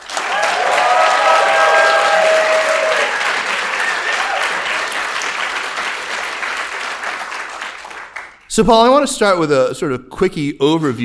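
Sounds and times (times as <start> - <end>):
whistles and cheers: 0.0 - 5.2
audience applause: 0.0 - 8.4
speech: 8.6 - 11.0.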